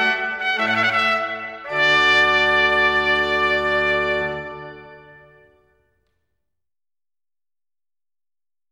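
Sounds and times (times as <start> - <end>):
trumpet playing a rondeau: 0.0 - 5.9.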